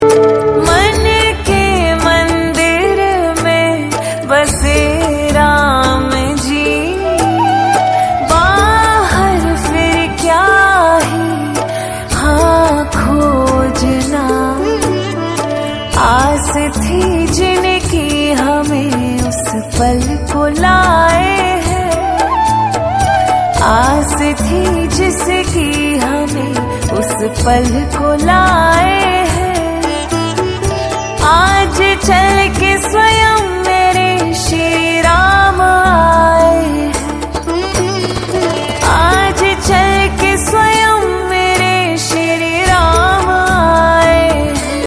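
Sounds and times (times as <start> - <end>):
bhajan devotional song: 0.0 - 44.8.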